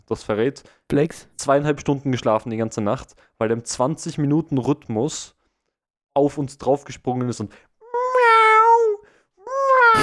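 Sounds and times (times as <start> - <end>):
speech: 0.1 - 5.4, 6.2 - 7.7
person imitating a loud cat meow: 7.8 - 10.0.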